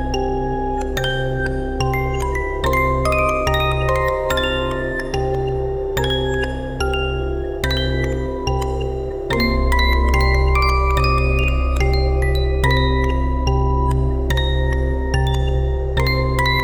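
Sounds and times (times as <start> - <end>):
creepy music box melody: 0.0 - 16.6.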